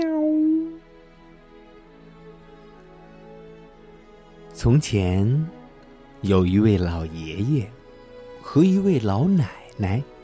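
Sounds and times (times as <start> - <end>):
person imitating a cat meow: 0.0 - 0.8
speech: 4.6 - 5.6, 6.2 - 7.8, 8.4 - 10.1.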